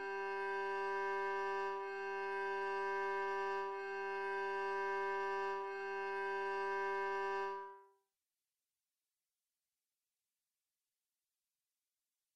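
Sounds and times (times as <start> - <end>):
violin playing open strings in whole notes: 0.0 - 7.8.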